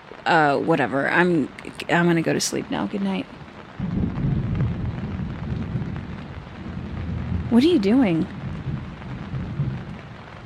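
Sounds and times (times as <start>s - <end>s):
rain: 0.0s - 10.4s
speech: 0.2s - 4.0s, 7.5s - 8.4s
thunder: 3.8s - 10.4s.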